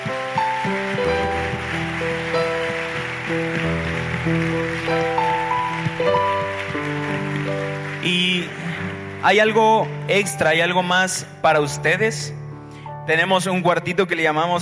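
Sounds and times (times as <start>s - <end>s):
audience applause: 0.0s - 10.3s
speech: 9.2s - 12.4s, 13.1s - 14.6s.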